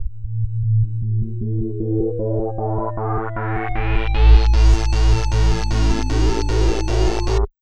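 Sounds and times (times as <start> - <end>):
chords: 1.2 - 7.5.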